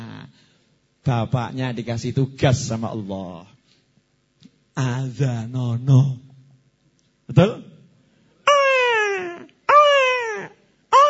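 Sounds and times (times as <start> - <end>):
speech: 1.0 - 3.5, 4.8 - 6.2, 7.3 - 7.7
voice imitating a baby crying: 8.5 - 11.0.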